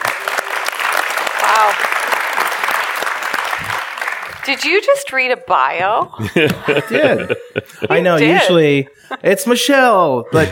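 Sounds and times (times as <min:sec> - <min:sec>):
audience applause: 0:00.0 - 0:04.9
speech: 0:04.5 - 0:10.4
laughter: 0:06.0 - 0:10.4.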